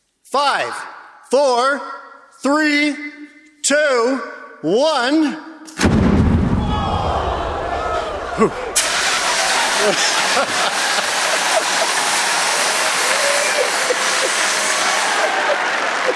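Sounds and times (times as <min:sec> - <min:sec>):
speech: 0:00.3 - 0:06.0, 0:08.4 - 0:08.7, 0:09.8 - 0:10.9
hydrogen-filled balloon exploding: 0:05.8 - 0:08.0, 0:08.7 - 0:11.7
laughter: 0:07.1 - 0:16.1
sharp burst: 0:08.6 - 0:15.6.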